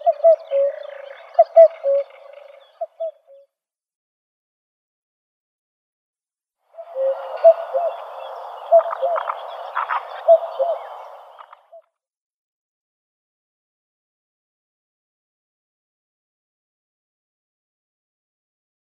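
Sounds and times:
male common cuckoo display calling: 0.0 - 3.5, 6.8 - 11.9.

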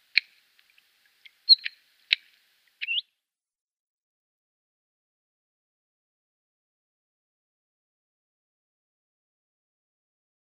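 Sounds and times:
Bluethroat calls: 0.0 - 3.2.

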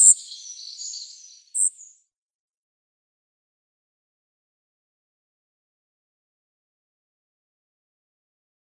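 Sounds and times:
spotted flycatcher calls: 0.0 - 2.0.

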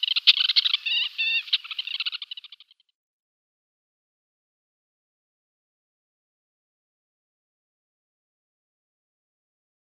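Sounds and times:
Red-necked Phalarope display calls: 0.0 - 2.8.

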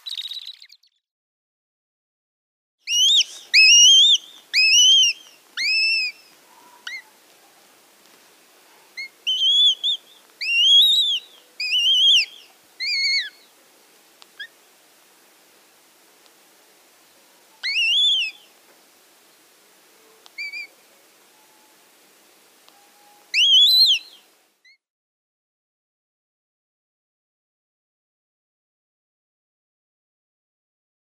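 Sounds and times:
Northern goshawk nestlings calling: 2.9 - 7.2, 8.9 - 13.5, 17.6 - 18.4, 20.4 - 20.7, 23.4 - 24.2.

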